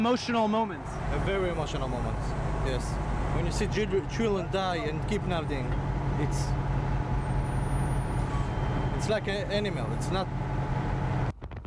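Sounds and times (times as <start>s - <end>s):
speech: 0.0s - 6.6s, 9.0s - 10.4s
military trucks loaded with ammunition driving on roads east of the Gaza Strip: 0.0s - 11.3s.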